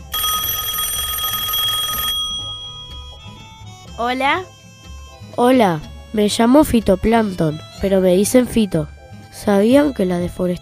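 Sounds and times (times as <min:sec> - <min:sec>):
telephone bell ringing for an incoming call: 0:00.0 - 0:03.7
speech: 0:04.0 - 0:04.6, 0:05.4 - 0:10.6.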